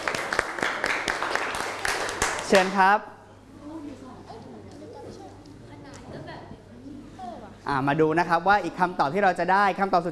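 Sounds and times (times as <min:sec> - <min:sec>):
group applause: 0:00.0 - 0:02.8
speech: 0:02.5 - 0:03.1, 0:07.7 - 0:10.0.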